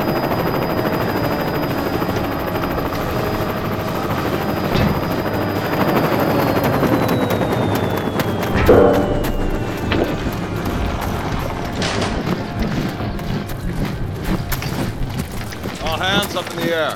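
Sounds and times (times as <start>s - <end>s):
aircraft of North Island EOS roaring: 0.0s - 16.7s.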